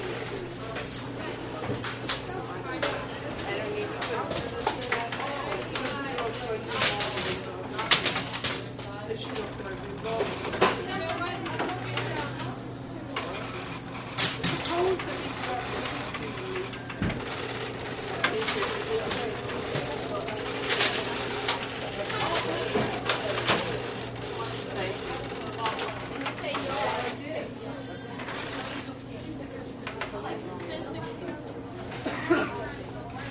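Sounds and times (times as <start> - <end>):
grocery store ambience: 0.0 - 33.2
grocery store cash register: 4.3 - 27.3, 28.0 - 29.0.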